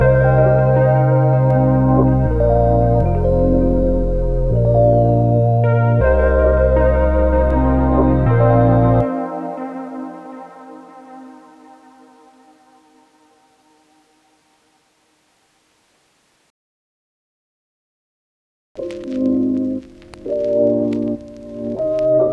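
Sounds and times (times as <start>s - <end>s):
hip hop music: 0.0s - 13.0s, 18.8s - 22.3s.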